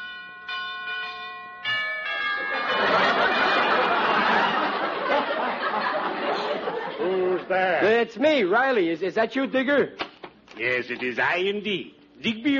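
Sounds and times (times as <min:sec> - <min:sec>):
doorbell ringing: 0:00.0 - 0:04.3
laughter: 0:02.4 - 0:07.8
speech: 0:07.0 - 0:10.0, 0:10.6 - 0:12.5.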